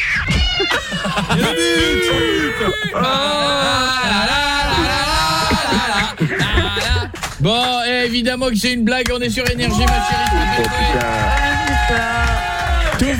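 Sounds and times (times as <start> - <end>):
cat meowing strangely: 0.0 - 3.0
laughter: 0.5 - 7.5, 9.5 - 11.3
speech: 7.4 - 13.1.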